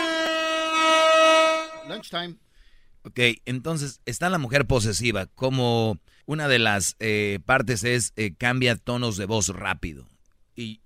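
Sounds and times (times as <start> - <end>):
corneta horn sound effect: 0.0 - 2.1
speech: 2.0 - 10.8.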